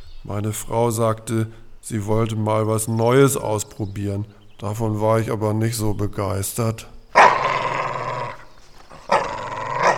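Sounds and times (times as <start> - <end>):
speech: 0.2 - 7.2
dog growling and barking: 7.2 - 9.9.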